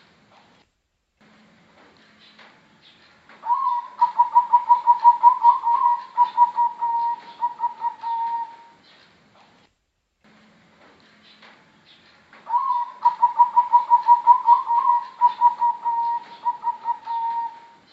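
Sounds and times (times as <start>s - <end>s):
Bangkok type zebra dove singing quick evenly pulsed coos: 3.4s - 8.8s, 12.5s - 17.9s.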